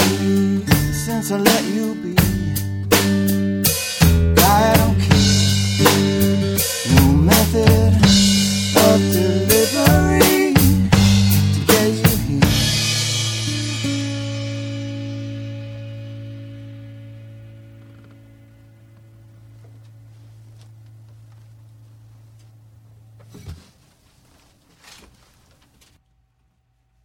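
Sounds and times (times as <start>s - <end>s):
drums: 0.0s - 16.1s.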